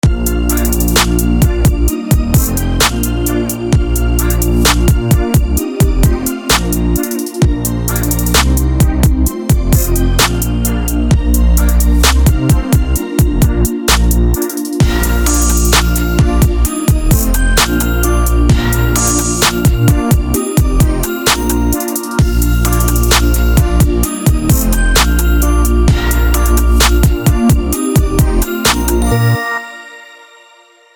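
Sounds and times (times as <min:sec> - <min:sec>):
instrumental music: 0:00.0 - 0:30.9.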